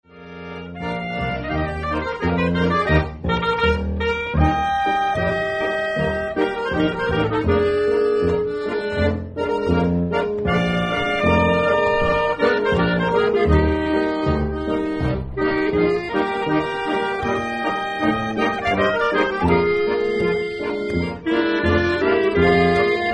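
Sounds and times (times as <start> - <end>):
polka music: 0.1 - 23.1.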